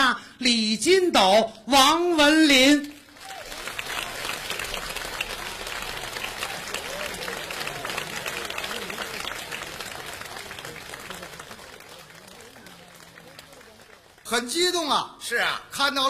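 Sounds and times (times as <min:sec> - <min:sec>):
speech: 0:00.4 - 0:03.0, 0:14.3 - 0:16.0
faint murmur of voices: 0:02.6 - 0:16.0
warm applause from a large audience: 0:03.0 - 0:14.6.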